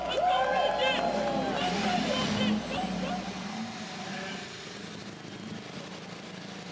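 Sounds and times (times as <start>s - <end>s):
laughter: 0.0s - 3.8s
race car engines roaring to life: 0.0s - 6.7s.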